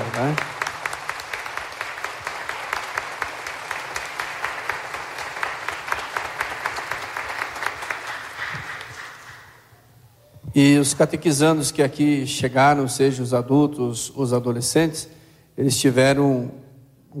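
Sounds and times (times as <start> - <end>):
applause: 0.0 - 9.7
speech: 0.2 - 0.6, 10.6 - 17.1.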